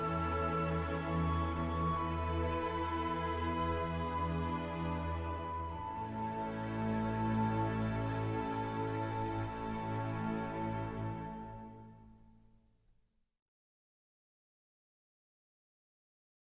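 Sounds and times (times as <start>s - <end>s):
symphony orchestra playing a Christmas carol: 0.0s - 11.8s.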